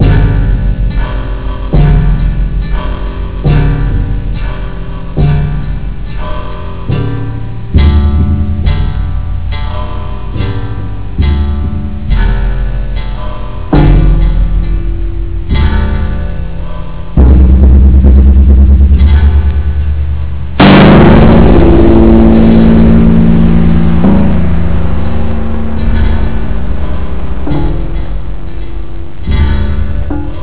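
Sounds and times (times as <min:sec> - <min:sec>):
gong: 0:00.0 - 0:30.4.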